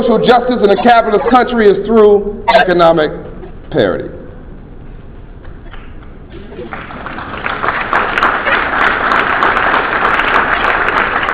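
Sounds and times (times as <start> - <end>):
speech: 0.0 - 4.2
audience applause: 6.5 - 11.3.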